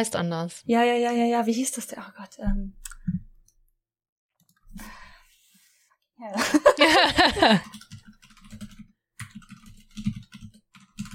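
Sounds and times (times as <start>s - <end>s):
speech: 0.0s - 3.0s, 6.2s - 7.8s
laughter: 6.3s - 7.7s
keyboard typing right beside the microphone: 7.3s - 11.1s.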